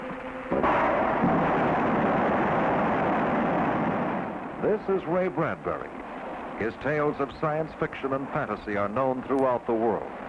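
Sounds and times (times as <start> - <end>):
rocket engine test firing at the Rocketdyne Propulsion Laboratory: 0.5 - 8.6
speech: 4.7 - 10.2.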